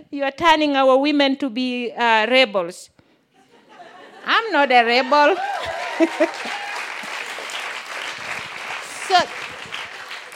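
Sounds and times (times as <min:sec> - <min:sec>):
speech: 0:00.1 - 0:03.0, 0:04.2 - 0:06.6, 0:09.1 - 0:09.4
laughter: 0:03.4 - 0:07.5
whoops and cheers: 0:05.0 - 0:07.2
audience applause: 0:05.0 - 0:10.3.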